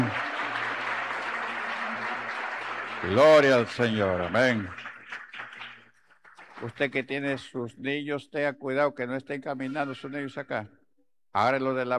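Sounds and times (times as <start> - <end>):
crowd applauding: 0.0 - 6.9
speech: 3.0 - 4.8, 6.6 - 11.9.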